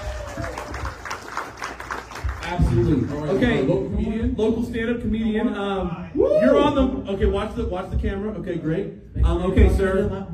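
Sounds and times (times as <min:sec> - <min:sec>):
audience applause: 0:00.0 - 0:03.7
speech: 0:02.5 - 0:10.3.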